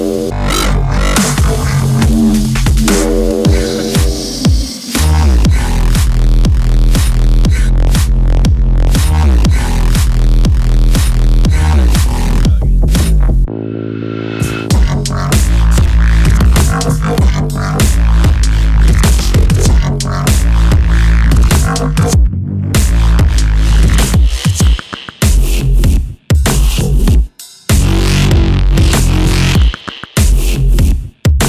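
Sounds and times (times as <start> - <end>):
heavy bass drum and bass dubstep music: 0.0 - 31.4.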